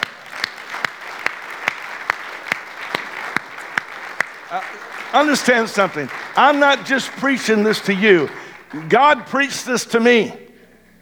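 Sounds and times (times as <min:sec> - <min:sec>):
person clapping: 0:00.0 - 0:09.4
laughter: 0:00.4 - 0:10.3
speech: 0:04.5 - 0:10.4.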